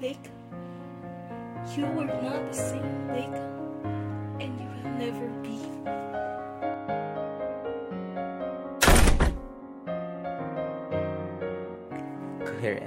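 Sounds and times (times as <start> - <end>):
speech: 0.0 - 0.4, 1.7 - 6.0
soft sustained music: 0.0 - 12.8
door slamming: 8.8 - 9.6.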